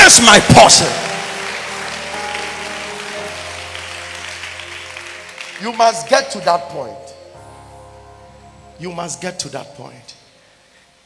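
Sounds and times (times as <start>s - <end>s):
crowd clapping: 0.0s - 6.6s
speech: 0.1s - 1.1s, 5.6s - 7.1s, 8.8s - 10.2s.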